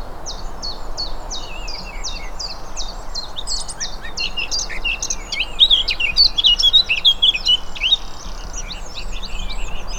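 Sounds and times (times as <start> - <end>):
blackcap singing: 0.2 - 9.9.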